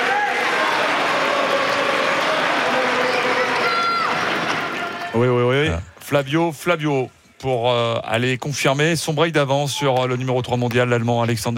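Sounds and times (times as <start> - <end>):
tennis crowd on Philippe Chatrier court cheering and applauding: 0.0 - 5.3
speech: 5.2 - 11.5.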